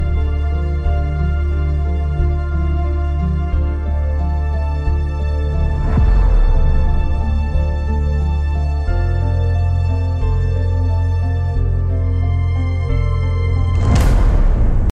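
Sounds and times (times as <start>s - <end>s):
Bollywood trailer music ringtone: 0.0s - 14.8s.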